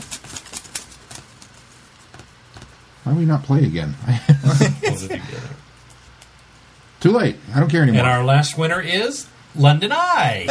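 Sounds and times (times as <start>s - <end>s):
paper name slips being shuffled: 0.0s - 3.0s
speech: 3.1s - 5.7s, 7.0s - 10.5s
laughter: 4.1s - 5.5s.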